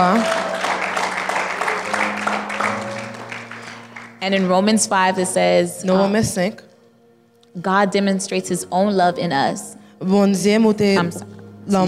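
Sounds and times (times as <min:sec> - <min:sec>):
speech: 0:00.0 - 0:00.4, 0:04.2 - 0:06.7, 0:07.6 - 0:11.8
crowd applause: 0:00.0 - 0:04.2.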